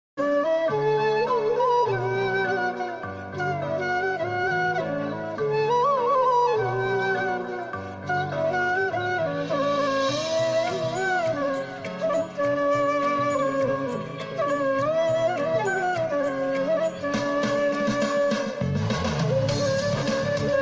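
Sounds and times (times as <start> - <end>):
flute ringtone: 0.2 - 20.6.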